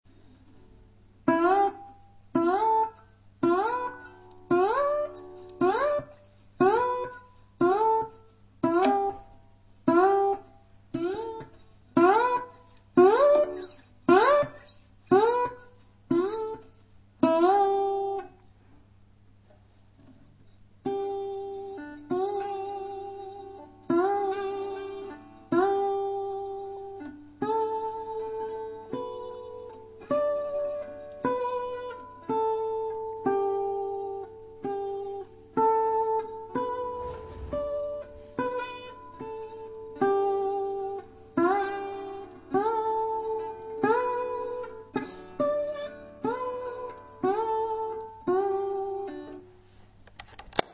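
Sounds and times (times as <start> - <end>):
slide guitar blues: 1.3 - 9.2, 9.9 - 16.6, 17.2 - 18.3, 20.8 - 37.0, 37.9 - 49.5.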